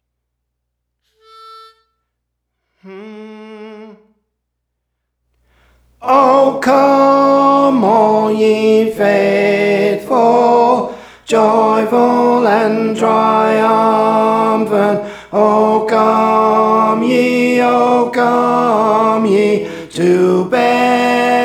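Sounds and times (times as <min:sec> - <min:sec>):
tenor singing songs: 0:06.0 - 0:21.4.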